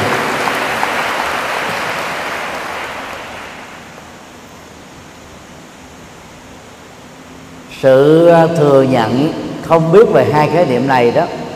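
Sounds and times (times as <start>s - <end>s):
audience applause: 0.0s - 3.8s
speech: 7.8s - 11.4s.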